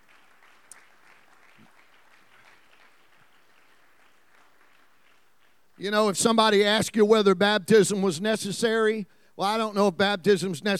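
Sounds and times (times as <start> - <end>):
audience clapping: 0.0 - 6.1
speech: 5.8 - 10.7.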